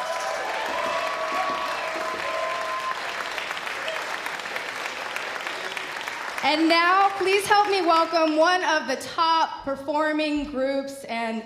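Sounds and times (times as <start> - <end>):
live concert audience applause: 0.0 - 8.2
crowd noise: 0.0 - 8.3
speech: 6.4 - 11.4.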